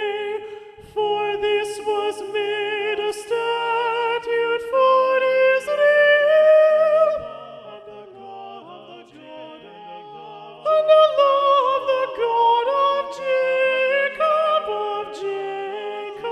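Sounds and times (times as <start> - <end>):
soprano singing: 0.0 - 16.3.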